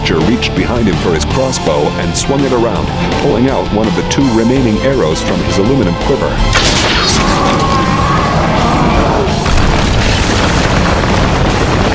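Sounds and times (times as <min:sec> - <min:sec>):
speech: 0:00.1 - 0:07.7
explosive blast: 0:06.4 - 0:11.9
huge creature slamming down into the sand: 0:06.5 - 0:11.9.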